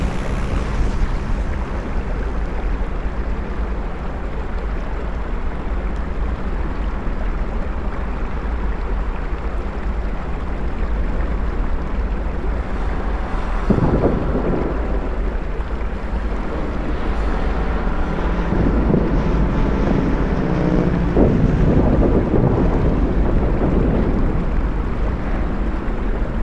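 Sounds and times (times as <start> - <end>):
bridge ambience: 0.0 - 26.4.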